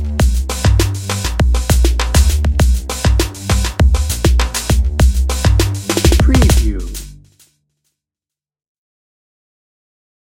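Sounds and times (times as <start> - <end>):
electro drum and bass music: 0.0 - 7.5.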